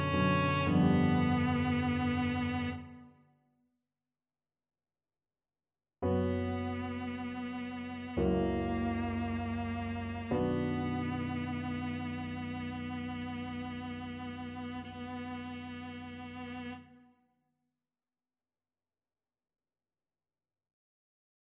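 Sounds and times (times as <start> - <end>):
viola: 0.0 - 3.2, 6.1 - 17.0.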